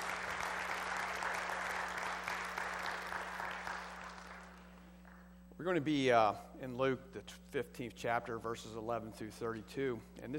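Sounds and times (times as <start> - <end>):
audience applause: 0.0 - 4.8
speech: 5.6 - 10.3.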